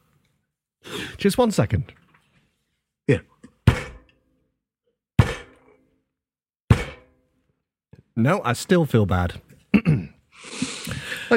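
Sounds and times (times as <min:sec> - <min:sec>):
speech: 0:01.2 - 0:02.0, 0:03.1 - 0:03.3, 0:08.2 - 0:09.5
heavy hollow thunks of shopping being unloaded from a car: 0:03.6 - 0:04.1, 0:05.2 - 0:05.8, 0:06.7 - 0:07.2.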